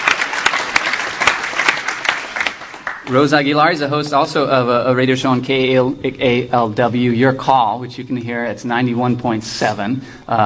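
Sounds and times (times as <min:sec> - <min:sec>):
audience applause: 0:00.0 - 0:03.6
speech: 0:03.1 - 0:10.4.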